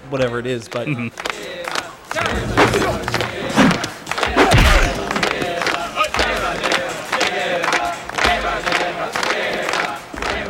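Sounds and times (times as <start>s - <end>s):
speech: 0.1s - 3.3s
sharp claps beating a steady rhythm: 0.6s - 3.4s, 4.1s - 10.4s
group of men chanting loudly together: 1.1s - 10.4s
constant crowd roar: 1.3s - 10.4s
low thumps: 2.2s - 5.4s.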